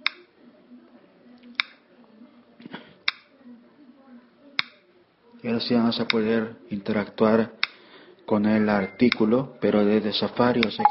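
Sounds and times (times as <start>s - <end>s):
clicks from taps on a phone screen: 1.6s - 1.8s
speech: 5.4s - 7.6s, 8.3s - 10.8s.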